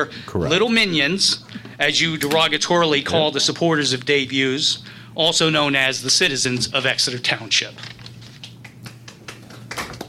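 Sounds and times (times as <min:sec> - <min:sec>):
speech: 0:00.0 - 0:08.0
sparse hand claps: 0:08.4 - 0:10.0.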